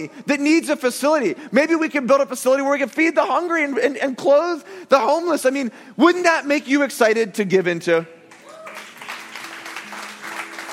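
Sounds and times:
speech: 0:00.0 - 0:08.2
audience clapping: 0:08.3 - 0:10.7.

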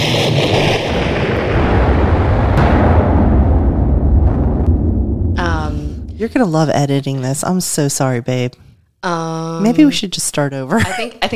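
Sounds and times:
explosion sound effect: 0:00.0 - 0:08.4
speech: 0:06.2 - 0:11.3.

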